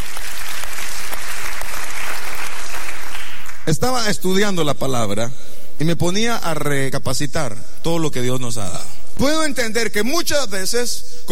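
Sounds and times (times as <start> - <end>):
audience clapping hands: 0.0 - 3.8
speech: 3.7 - 11.3.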